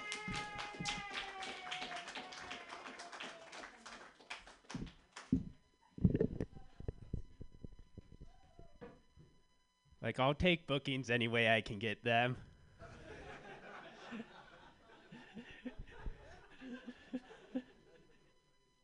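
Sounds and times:
laughter: 0.0 - 3.8, 12.8 - 18.3
scattered clapping from a comedy show audience: 0.0 - 5.6
speech: 10.1 - 12.5.

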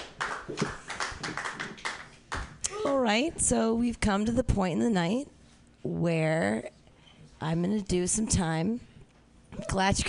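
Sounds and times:
audience clapping: 0.0 - 3.0
speech: 2.8 - 6.8, 7.4 - 8.9, 9.6 - 10.0.

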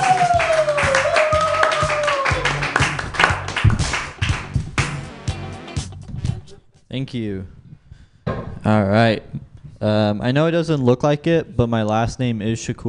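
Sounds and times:
audience clapping: 0.0 - 5.3
speech: 7.0 - 7.6, 8.7 - 12.8.

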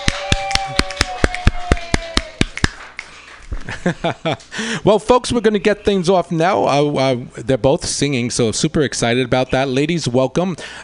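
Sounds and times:
few people clapping: 0.0 - 4.5
speech: 3.8 - 10.8.

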